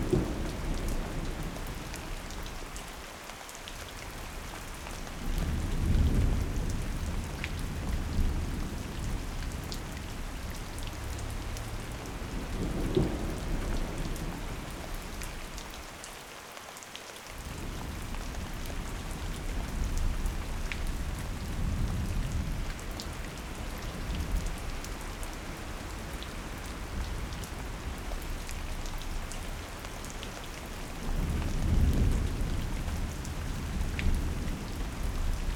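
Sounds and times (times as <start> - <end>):
thunderstorm: 0.0 - 2.6, 5.1 - 15.8, 17.4 - 35.5.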